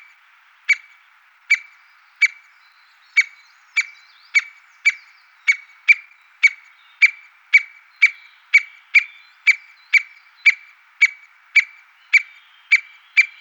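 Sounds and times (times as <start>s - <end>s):
white-backed woodpecker sharp clicky call notes: 0.0s - 13.4s.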